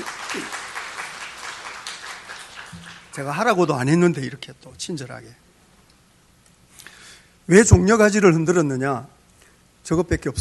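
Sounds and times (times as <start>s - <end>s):
audience applause: 0.0s - 3.2s
speech: 3.2s - 5.5s, 7.5s - 9.2s, 9.8s - 10.3s.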